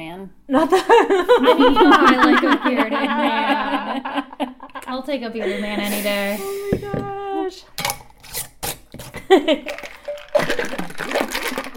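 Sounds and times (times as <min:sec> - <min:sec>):
speech: 0:00.0 - 0:04.1, 0:05.0 - 0:07.7, 0:09.3 - 0:09.9
laughter: 0:00.5 - 0:06.1
fizzing of a carbonated drink: 0:09.6 - 0:11.7.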